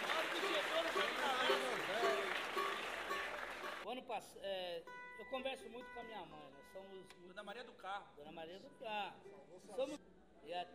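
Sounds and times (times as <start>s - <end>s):
audience applause: 0.0s - 3.8s
voices calling and talking: 0.0s - 3.8s
speech: 4.2s - 10.7s.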